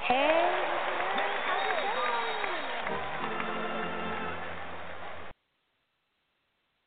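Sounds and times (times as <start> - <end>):
audience applause greeting a guest on a show: 0.0 - 5.3.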